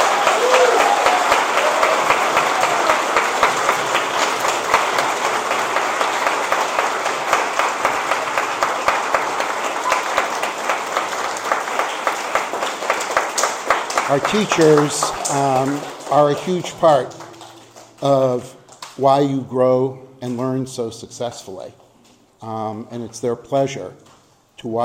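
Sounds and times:
school assembly applauding teachers: 0.0s - 19.0s
speech: 14.1s - 17.2s, 18.0s - 21.8s, 22.4s - 24.8s.

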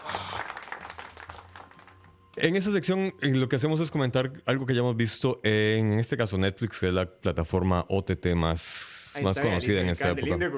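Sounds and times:
applause sound effect: 0.0s - 2.4s
speech: 2.4s - 10.5s.

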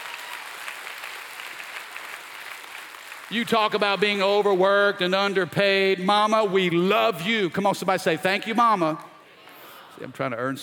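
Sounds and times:
audience clapping hands: 0.0s - 5.2s
speech: 3.3s - 9.1s, 10.0s - 10.6s.

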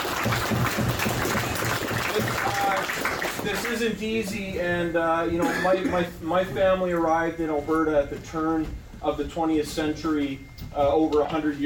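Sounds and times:
round of applause: 0.0s - 3.9s
speech: 0.2s - 1.0s, 2.9s - 11.6s.

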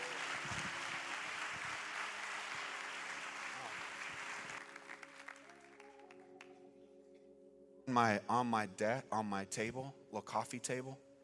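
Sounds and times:
audience applause: 0.0s - 6.2s
speech: 7.9s - 11.0s.

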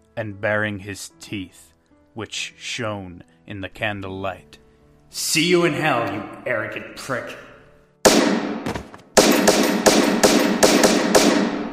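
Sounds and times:
speech: 0.2s - 7.5s
gun firing repeatedly: 8.1s - 11.7s.

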